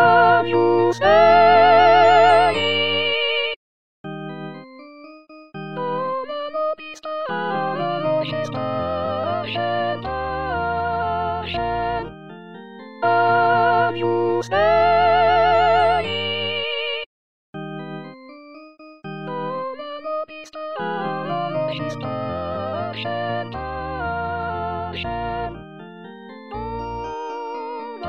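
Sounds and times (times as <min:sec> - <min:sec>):
women singing: 0:00.0 - 0:03.6, 0:05.9 - 0:12.1, 0:13.0 - 0:16.9, 0:20.8 - 0:25.6.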